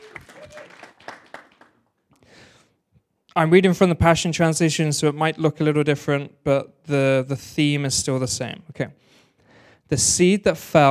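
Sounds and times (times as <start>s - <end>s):
audience applause: 0.0s - 1.8s
speech: 3.4s - 9.2s, 9.9s - 10.8s.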